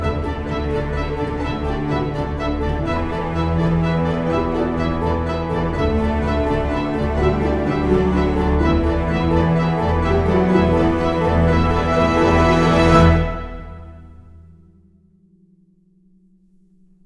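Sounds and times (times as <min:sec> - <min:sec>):
orchestral music: 0:00.0 - 0:14.6.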